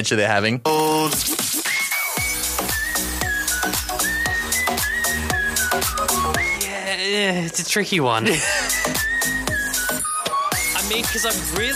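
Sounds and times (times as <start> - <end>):
speech: 0.0 - 1.4, 7.0 - 9.1, 10.9 - 11.7
whistling melody in a song: 1.6 - 6.7, 8.5 - 11.7.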